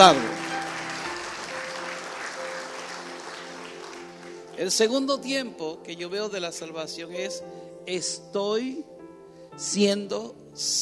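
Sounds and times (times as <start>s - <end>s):
speech: 0.0s - 0.3s, 4.6s - 9.0s, 9.6s - 10.8s
audience applause: 0.0s - 4.7s.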